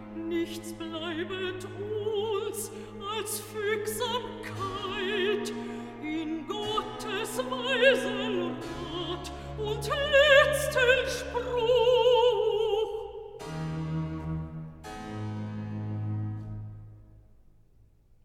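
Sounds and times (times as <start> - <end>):
recitative singing: 0.0 - 13.6.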